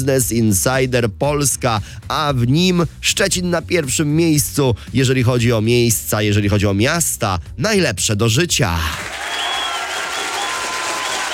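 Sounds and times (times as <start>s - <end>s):
speech: 0.0s - 9.2s
audience applause for the people of Szczecin: 9.0s - 11.3s.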